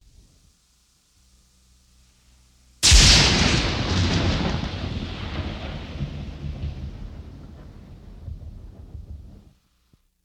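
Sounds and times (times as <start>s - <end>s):
thunder crack: 2.8s - 9.6s.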